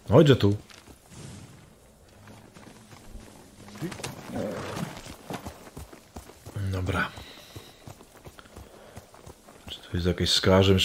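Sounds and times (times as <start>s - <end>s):
speech: 0.1s - 0.7s, 10.0s - 10.8s
horse noise in a video game: 2.2s - 5.8s
horse hoof clatter in a video game: 2.2s - 9.8s.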